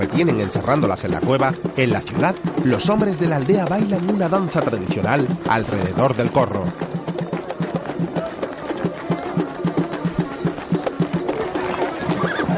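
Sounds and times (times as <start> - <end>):
horse hooves: 0.0 - 12.5
speech: 0.1 - 6.9
horse neighing: 11.6 - 12.5.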